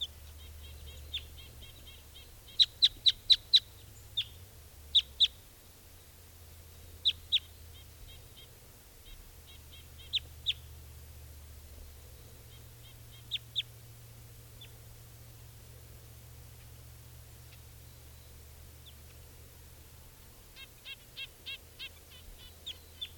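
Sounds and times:
wild bird chirping from a tree: 0:00.0 - 0:05.5, 0:06.7 - 0:10.8, 0:11.8 - 0:13.8, 0:14.5 - 0:14.9, 0:16.5 - 0:19.3, 0:20.2 - 0:23.1.

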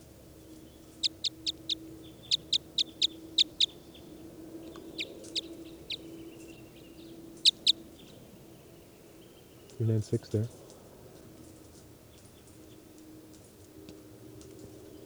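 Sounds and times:
bird calling with sharp high-pitched notes: 0:00.0 - 0:13.0
faint steady low hum: 0:00.0 - 0:15.0
speech: 0:09.8 - 0:10.6.

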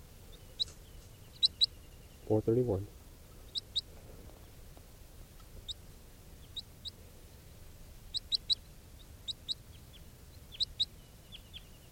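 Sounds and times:
crossbill calls: 0:00.3 - 0:02.6, 0:03.4 - 0:04.6, 0:05.4 - 0:11.9
speech: 0:02.3 - 0:03.0.

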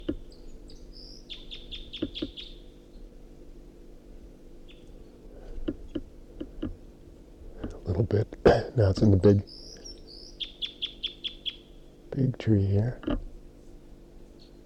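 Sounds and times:
wild bird singing: 0:00.0 - 0:03.0, 0:04.6 - 0:05.2, 0:09.4 - 0:11.9
low hum: 0:00.0 - 0:14.6
speech: 0:08.1 - 0:09.6, 0:12.2 - 0:13.2.

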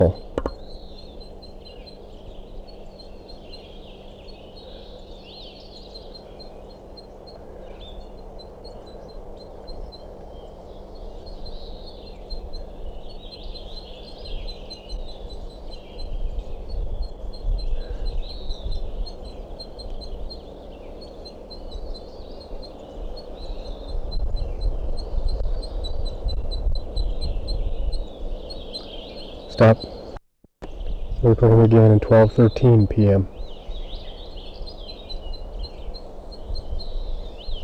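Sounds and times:
speech: 0:00.0 - 0:00.2, 0:29.6 - 0:29.9, 0:31.3 - 0:33.4
female crossbill calling from a nest in a tree: 0:00.0 - 0:26.3, 0:26.9 - 0:37.6
low steady hum: 0:29.2 - 0:33.4.

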